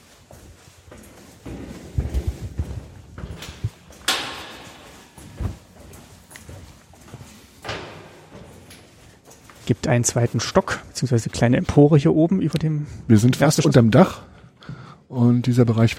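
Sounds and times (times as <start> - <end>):
footsteps climbing stairs to an upper gallery in an exhibition building: 0.0 - 10.8
speech: 9.7 - 14.3, 15.2 - 15.9.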